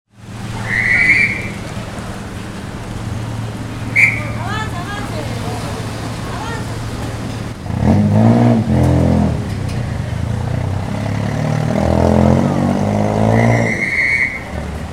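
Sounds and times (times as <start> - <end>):
car: 0.1 - 14.9
traffic police whistles in Cusco: 0.5 - 1.7, 3.8 - 4.5, 13.2 - 14.6.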